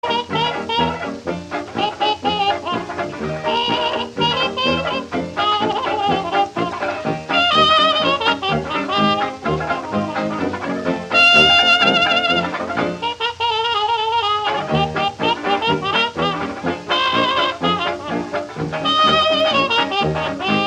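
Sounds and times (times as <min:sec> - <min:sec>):
old jazz music: 0:00.0 - 0:20.6.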